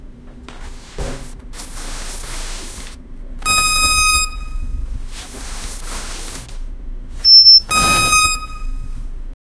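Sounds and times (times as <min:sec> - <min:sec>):
hospital beep: 0:03.4 - 0:04.8, 0:07.2 - 0:09.0.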